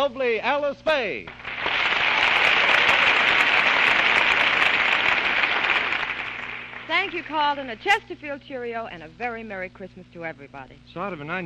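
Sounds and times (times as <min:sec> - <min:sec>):
speech: 0:00.0 - 0:01.8, 0:06.9 - 0:11.4
studio audience applause: 0:01.2 - 0:07.8.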